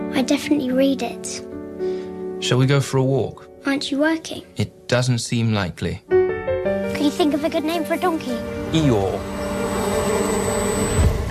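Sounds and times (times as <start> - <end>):
speech: 0.1 - 6.2, 7.0 - 9.4
bees buzzing: 7.2 - 11.2.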